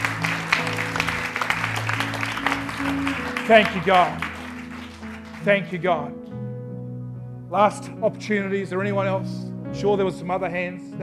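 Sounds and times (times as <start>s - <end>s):
church congregation applause welcoming back a returning guest: 0.0s - 6.2s
speech: 3.5s - 4.3s, 5.4s - 6.2s, 7.5s - 11.0s.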